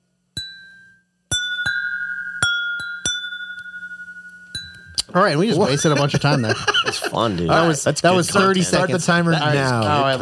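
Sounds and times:
glasses clinking and ringing: 0.4s - 5.2s
speech: 5.2s - 10.2s
laughter: 5.4s - 10.2s.

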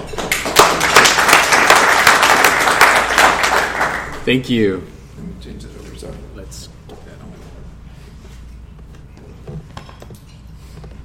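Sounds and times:
audience applause: 0.0s - 4.2s
speech: 4.3s - 6.8s.

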